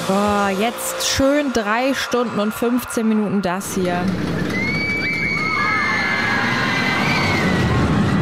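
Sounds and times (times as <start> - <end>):
speech: 0.1 - 4.6
roller coaster high squealing tones: 2.0 - 8.1
roller coaster ride at Magic Park Verden: 3.5 - 8.1.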